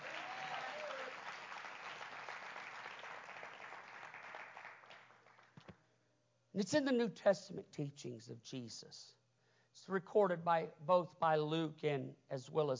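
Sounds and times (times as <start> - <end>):
audience clapping: 0.0 - 5.8
speech: 6.6 - 9.2, 9.8 - 12.7.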